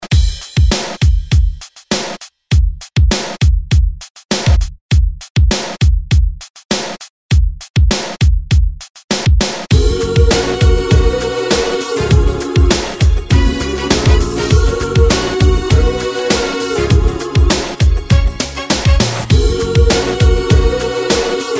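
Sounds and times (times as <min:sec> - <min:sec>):
beat at 100 BPM: 0:00.0 - 0:21.5.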